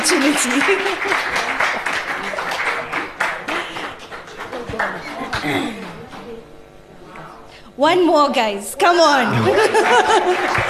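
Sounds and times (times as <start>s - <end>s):
laughter: 0.0s - 6.0s, 9.2s - 10.6s
audience applause: 0.0s - 6.1s, 9.3s - 10.6s
speech: 0.1s - 1.7s, 4.8s - 5.8s, 7.8s - 10.6s.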